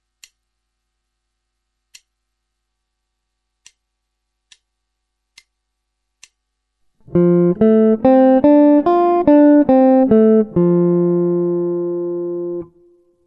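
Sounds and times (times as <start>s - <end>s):
guitar: 7.0s - 13.2s.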